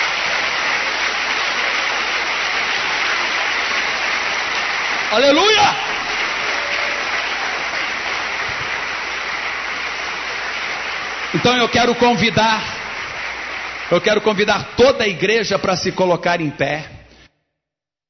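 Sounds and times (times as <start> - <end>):
audience applauding: 0.0 - 15.8
speech: 5.1 - 5.9, 11.4 - 12.7, 13.9 - 16.9.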